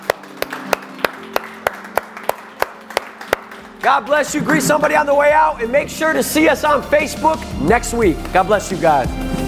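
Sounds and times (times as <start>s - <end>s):
audience clapping hands: 0.0s - 5.1s
speech: 3.8s - 9.3s.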